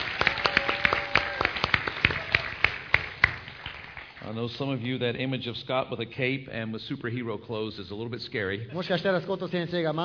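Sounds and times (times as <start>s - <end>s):
audience applause: 0.0s - 4.4s
speech: 4.3s - 10.0s.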